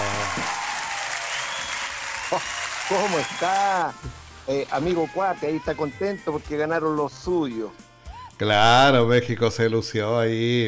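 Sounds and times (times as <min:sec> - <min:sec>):
audience applause: 0:00.0 - 0:03.9
speech: 0:02.3 - 0:07.8, 0:08.4 - 0:10.6.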